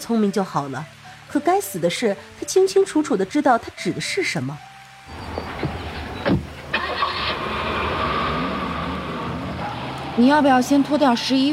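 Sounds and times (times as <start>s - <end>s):
speech: 0.1s - 4.7s, 10.2s - 11.5s
car engine starting: 5.1s - 11.5s.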